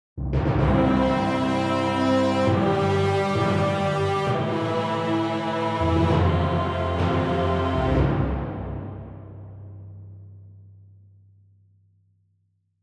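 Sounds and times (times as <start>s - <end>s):
orchestral hall reverb four seconds: 0.4s - 10.1s.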